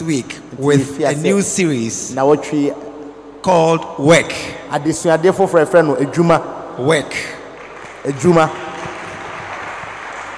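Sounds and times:
speech: 0.0 - 7.4, 8.0 - 8.6
crowd clapping: 7.5 - 10.3.

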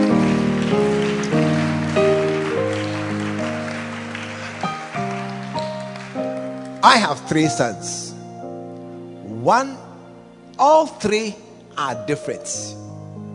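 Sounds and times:
crowd clapping: 0.0 - 7.3
sustained organ-like chords: 0.0 - 12.1
speech: 6.8 - 8.1, 9.4 - 9.9, 10.6 - 12.8.

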